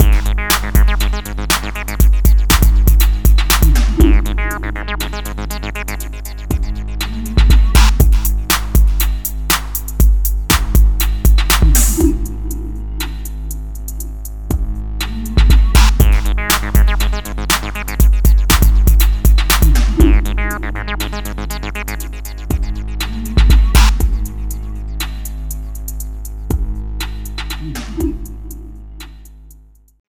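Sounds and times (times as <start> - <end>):
outro music: 0.0 - 13.8, 15.0 - 25.2.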